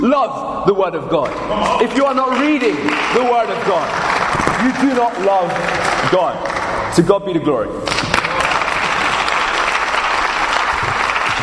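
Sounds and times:
speech: 0.0s - 8.0s
audience applause: 1.6s - 6.9s, 7.9s - 11.4s.

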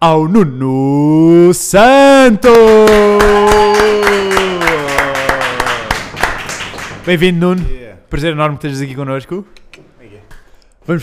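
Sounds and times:
speech: 0.0s - 4.2s, 7.1s - 9.6s, 10.9s - 11.0s
round of applause: 2.5s - 7.3s.

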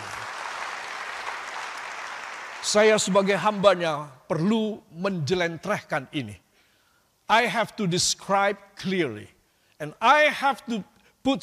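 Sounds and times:
audience applause: 0.0s - 3.2s
speech: 2.6s - 6.4s, 7.3s - 11.4s.

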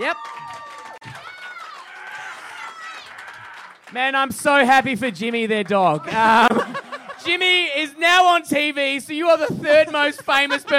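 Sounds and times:
speech: 0.0s - 0.8s, 3.9s - 10.7s
audience applause: 0.0s - 4.1s
laughter: 6.0s - 7.6s, 9.7s - 10.7s.

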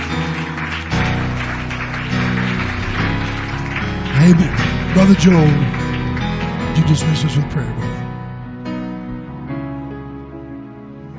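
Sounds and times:
audience clapping in praise: 0.0s - 8.0s
sustained low musical tones: 0.0s - 11.1s
speech: 4.3s - 5.8s, 6.8s - 8.0s.

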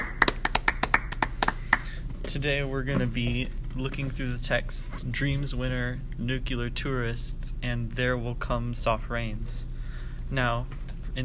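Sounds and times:
applause: 0.0s - 2.0s
speech: 2.3s - 9.7s, 10.3s - 11.2s.

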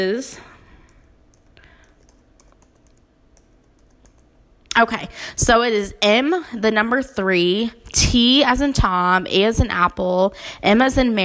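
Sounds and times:
speech: 0.0s - 0.5s, 4.8s - 11.2s
typing on a computer keyboard: 0.9s - 4.3s.

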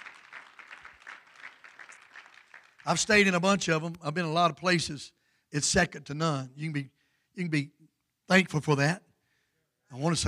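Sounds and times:
audience clapping hands: 0.0s - 3.7s
speech: 2.8s - 9.1s, 9.9s - 10.2s.

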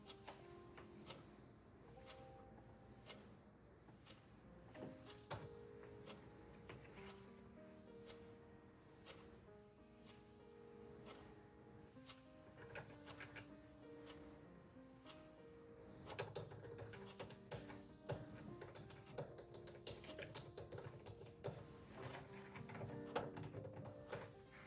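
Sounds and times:
clock ticking: 0.0s - 24.6s
lofi instrumental music with keyboard and bass line: 0.0s - 24.6s.

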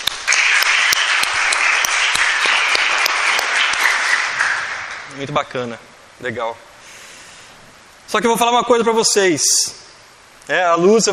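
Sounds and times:
crowd audience round of applause: 0.0s - 5.5s
speech: 5.2s - 6.7s, 8.1s - 9.8s, 10.5s - 11.1s.

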